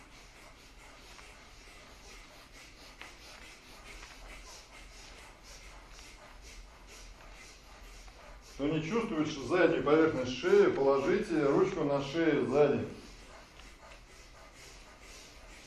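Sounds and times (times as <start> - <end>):
rapid bhastrika bellows yoga breathing through the nose: 0.0 - 15.6
speech: 8.6 - 13.0.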